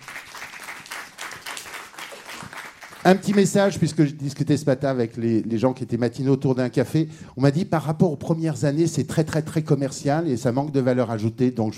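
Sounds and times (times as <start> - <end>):
audience applause: 0.0 - 3.7
speech: 3.0 - 11.7.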